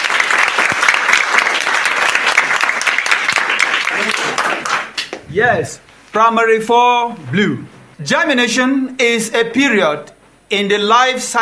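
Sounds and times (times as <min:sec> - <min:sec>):
audience applause: 0:00.0 - 0:05.2
speech: 0:05.3 - 0:11.4.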